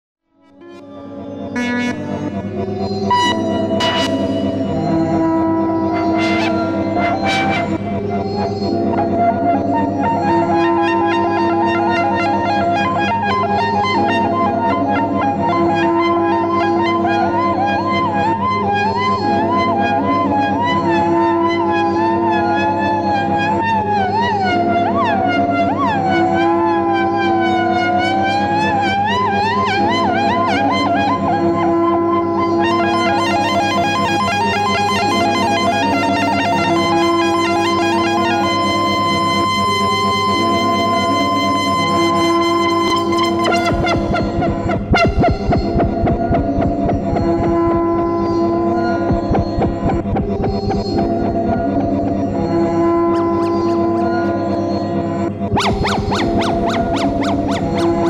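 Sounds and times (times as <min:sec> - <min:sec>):
guitar: 0:00.4 - 0:58.0.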